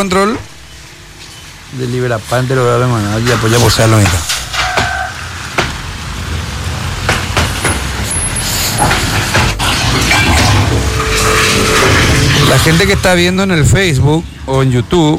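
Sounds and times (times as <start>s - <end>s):
speech: 0.0s - 0.5s, 1.7s - 4.3s, 12.5s - 15.1s
tanker truck passing on the road: 0.0s - 14.5s.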